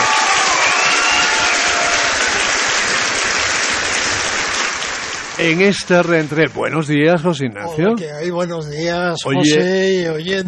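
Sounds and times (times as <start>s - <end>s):
audience applause: 0.0s - 6.8s
speech: 5.4s - 10.4s.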